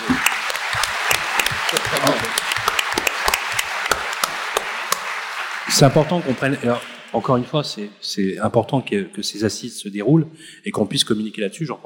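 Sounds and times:
audience applause: 0.0 - 7.8
speech: 5.7 - 11.8.

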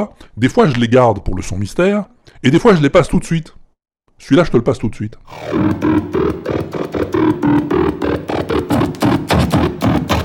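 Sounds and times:
speech: 0.0 - 3.6, 4.2 - 9.9
electronic music played with barcode scanners: 5.3 - 10.2.

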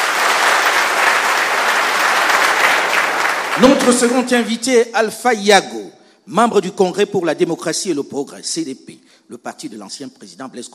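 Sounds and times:
studio audience applause: 0.0 - 4.3
speech: 3.6 - 10.7.

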